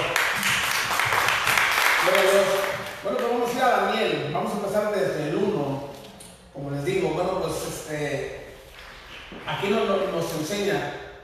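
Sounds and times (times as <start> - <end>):
audience applause: 0.0 - 3.0
speech: 3.0 - 5.8, 6.6 - 8.4, 9.3 - 11.0.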